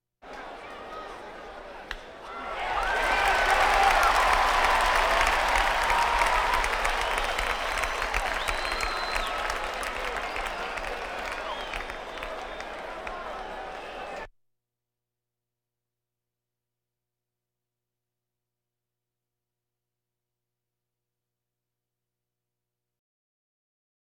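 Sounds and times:
crowds: 0.2 - 14.3.

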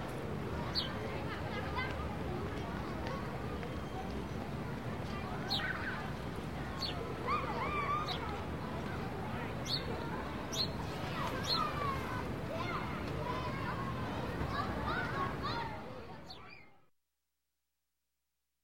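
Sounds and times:
children playing in a schoolyard: 0.5 - 16.8.

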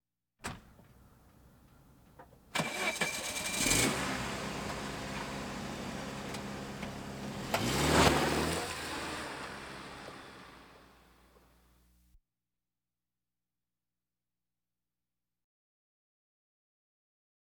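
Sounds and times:
various automobiles: 2.3 - 11.8.

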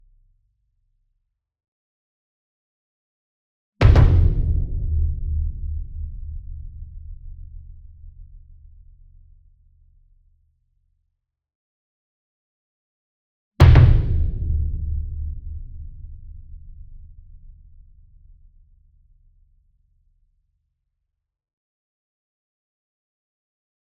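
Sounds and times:
40 inch concert bass drum struck with double soft beater near: 3.8 - 8.6, 13.6 - 18.2.

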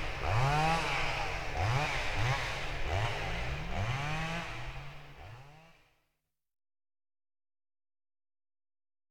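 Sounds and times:
chainsaw far off in the woods: 0.0 - 6.0.

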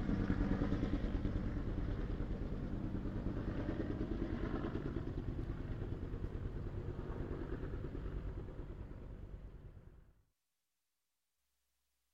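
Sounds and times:
army helicopter approaching and passing: 0.0 - 9.9.

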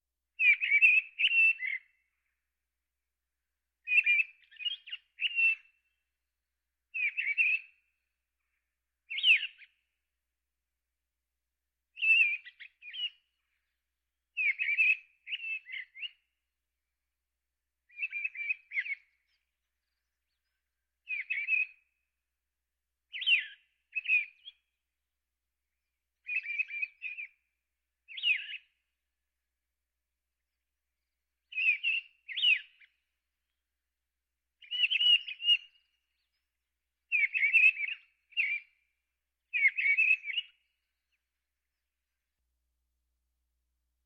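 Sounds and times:
birds: 0.3 - 2.6, 3.4 - 6.1, 6.8 - 10.0, 11.9 - 16.5, 17.7 - 22.3, 23.0 - 24.8, 25.7 - 29.3, 30.3 - 33.8, 34.5 - 42.8.

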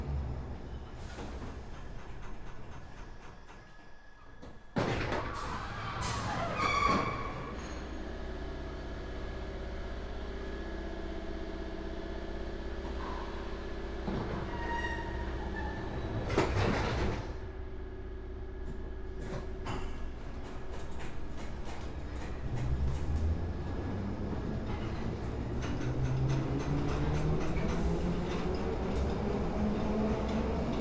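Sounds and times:
London Underground train interior during a ride: 0.0 - 30.8.

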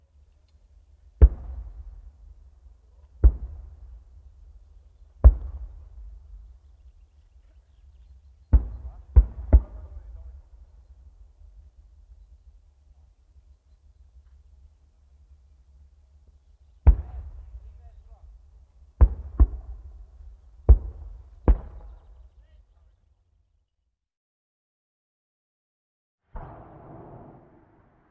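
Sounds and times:
mortar cannon firing: 5.2 - 6.6, 8.5 - 10.6, 16.8 - 18.4, 19.0 - 22.3, 26.3 - 28.1.

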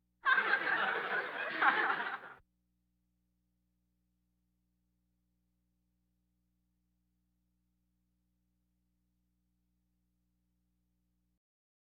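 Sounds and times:
audience laughter: 0.2 - 2.4.

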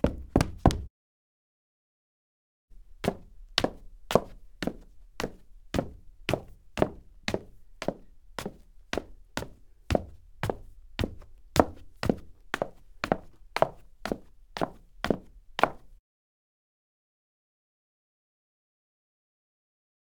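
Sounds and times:
foley footsteps on hard wood: 0.0 - 0.9, 2.9 - 15.9.

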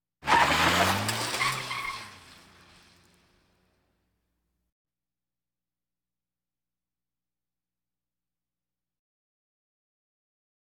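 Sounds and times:
various automobiles: 0.2 - 3.8.

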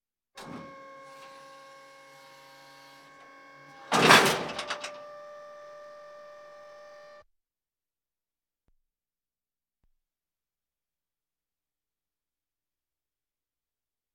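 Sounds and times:
military vehicles: 0.4 - 7.2.

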